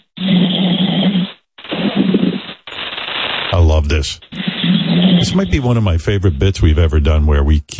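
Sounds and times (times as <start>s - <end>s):
caller snoring on hold: 0.0s - 2.4s, 4.4s - 5.8s
speech: 3.7s - 7.7s.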